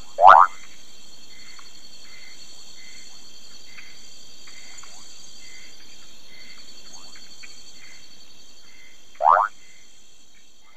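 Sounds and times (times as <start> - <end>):
Brown running frog Kassina fusca rising call: 0.1 - 0.7, 9.1 - 9.6.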